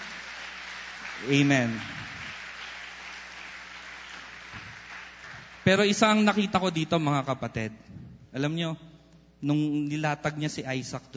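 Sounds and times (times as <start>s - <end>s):
church congregation clapping in praise: 0.0s - 6.8s
speech: 1.2s - 2.0s, 5.6s - 11.1s.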